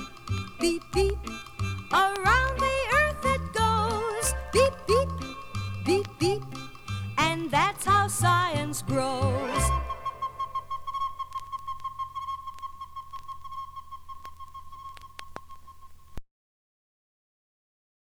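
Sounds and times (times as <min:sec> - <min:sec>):
person singing: 0:00.0 - 0:10.4
beeping: 0:00.0 - 0:16.2.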